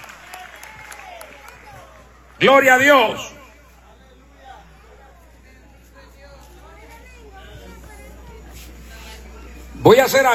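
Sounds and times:
audience applauding: 0.0s - 3.2s
speech: 2.4s - 3.4s, 9.8s - 10.3s.

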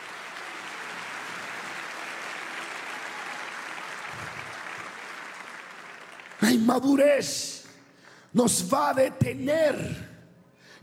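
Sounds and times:
audience applause: 0.0s - 7.0s
speech: 6.4s - 7.6s, 8.4s - 10.1s.

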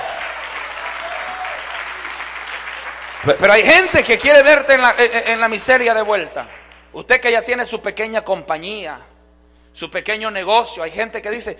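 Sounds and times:
audience applause: 0.0s - 3.9s
speech: 3.2s - 9.1s, 9.8s - 11.5s.

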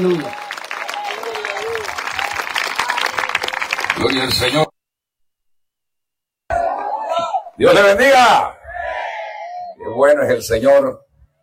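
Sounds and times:
speech: 0.0s - 0.4s, 4.0s - 4.7s, 7.6s - 8.6s, 9.8s - 11.0s
audience applause from a large group: 0.0s - 4.7s.

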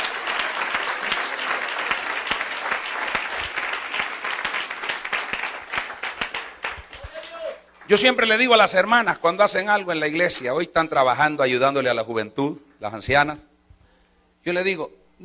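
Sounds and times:
audience applause: 0.0s - 8.3s
speech: 7.9s - 13.5s, 14.4s - 15.2s.

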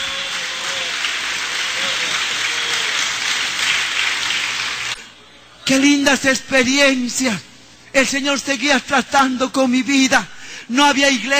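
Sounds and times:
audience applause: 0.0s - 5.0s
speech: 5.7s - 11.3s.

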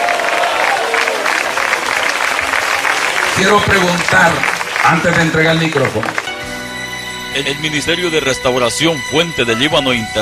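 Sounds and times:
church audience applauding: 0.0s - 6.7s
speech: 3.4s - 6.2s, 7.4s - 10.2s.

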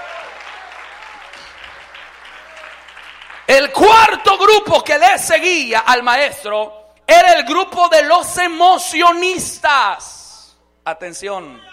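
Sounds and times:
crowd applauding: 0.0s - 3.7s
speech: 3.5s - 10.2s, 10.8s - 11.7s.

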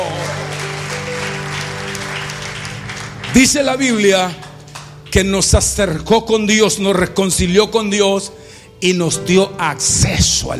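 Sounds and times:
audience applause: 0.0s - 5.2s
speech: 3.4s - 4.4s, 5.1s - 10.5s.

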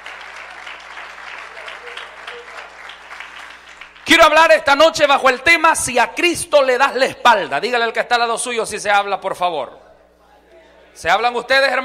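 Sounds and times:
audience applauding: 0.0s - 4.1s
speech: 4.1s - 9.8s, 11.0s - 11.8s.

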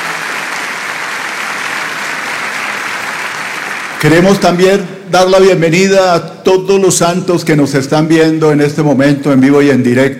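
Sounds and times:
audience applause: 0.0s - 4.6s
speech: 4.0s - 10.1s.

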